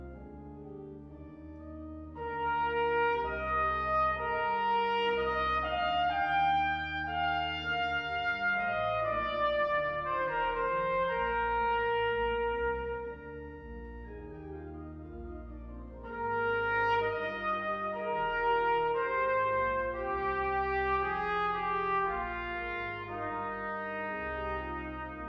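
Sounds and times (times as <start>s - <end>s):
organ playing a wedding hymn: 0.0s - 25.2s
trumpet playing a wedding hymn: 2.0s - 14.2s, 15.9s - 25.2s.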